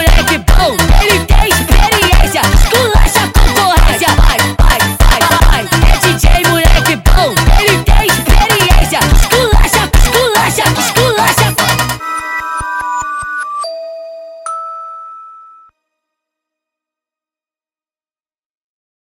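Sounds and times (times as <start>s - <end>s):
nightcore funk music: 0.0s - 14.4s.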